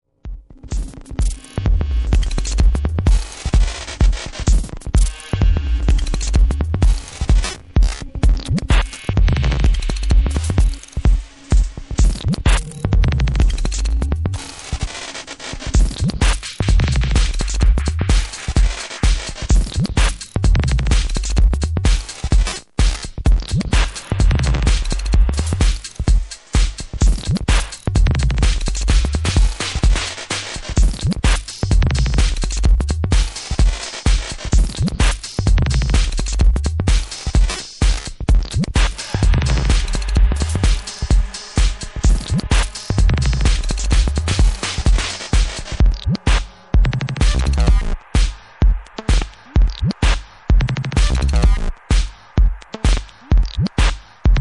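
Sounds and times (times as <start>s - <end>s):
drums: 0.1s - 54.3s.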